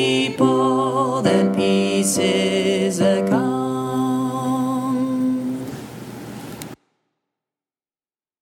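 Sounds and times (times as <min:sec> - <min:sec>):
baritone singing: 0:00.0 - 0:05.8.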